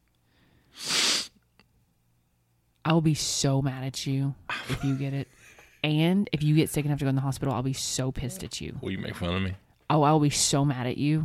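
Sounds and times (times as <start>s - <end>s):
person giving a sharp forceful sniff: 0.7s - 1.4s
speech: 2.9s - 11.2s
laughter: 4.5s - 5.8s.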